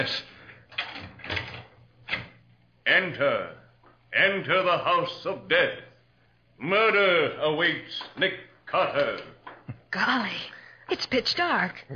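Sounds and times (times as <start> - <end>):
speech: 0.0 - 0.3, 2.9 - 3.6, 4.2 - 5.9, 6.6 - 11.9
door opening: 0.7 - 2.4.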